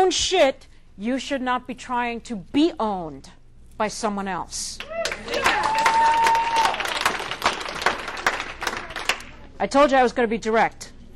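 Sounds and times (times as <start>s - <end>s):
speech: 0.0s - 6.2s, 9.6s - 10.8s
scattered cheers and voices: 4.8s - 7.0s
audience clapping: 4.8s - 9.4s.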